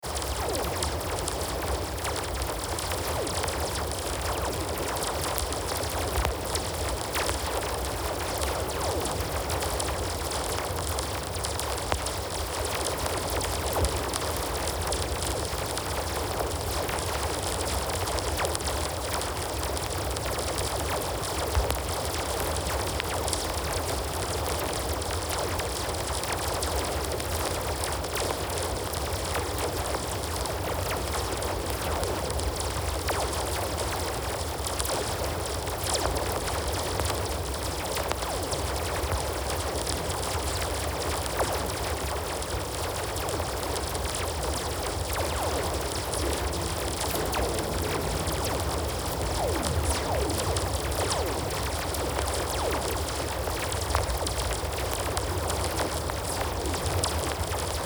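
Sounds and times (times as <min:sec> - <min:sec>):
rain: 0:00.0 - 0:57.8.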